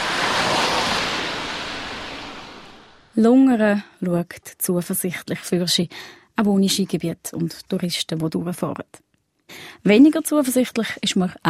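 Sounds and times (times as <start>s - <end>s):
car traffic on the main street: 0.0s - 3.2s
speech: 3.2s - 11.4s.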